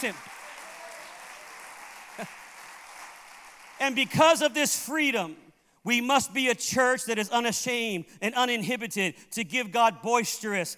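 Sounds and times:
speech: 0.0 - 0.3, 2.2 - 2.4, 3.8 - 10.7
audience clapping hands: 0.0 - 4.5.

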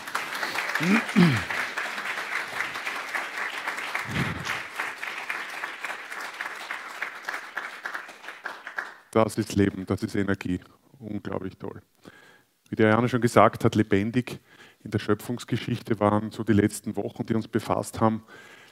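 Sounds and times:
audience applause: 0.0 - 9.0
speech: 0.8 - 1.5, 9.2 - 12.0, 12.7 - 18.6.

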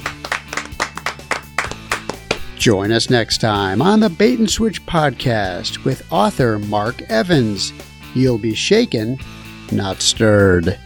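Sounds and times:
hosts clapping hands: 0.0 - 2.6
speech: 2.6 - 10.8.

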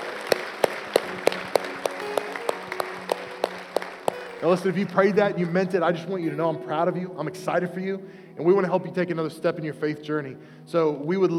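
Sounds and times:
crisp clap: 0.0 - 5.0
audience applause: 0.0 - 5.6
speech: 4.4 - 11.3.

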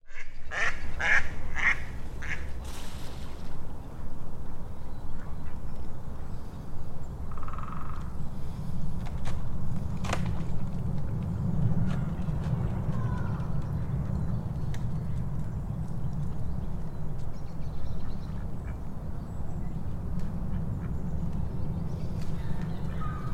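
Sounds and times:
ducks quacking: 0.1 - 2.6
traffic rumble: 0.1 - 23.3.

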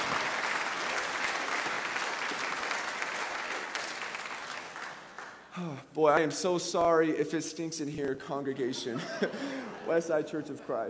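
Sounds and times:
crowd applause: 0.0 - 5.6
speech: 5.6 - 10.8
laughter: 8.4 - 10.8.

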